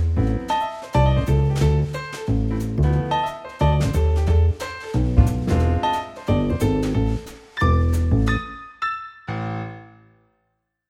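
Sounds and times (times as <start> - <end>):
jazz trio playing: 0.0 - 8.6.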